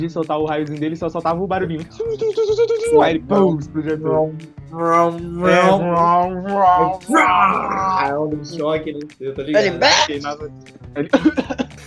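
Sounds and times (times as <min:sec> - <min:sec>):
speech: 0:00.0 - 0:11.8
giant monster roaring: 0:07.1 - 0:07.7.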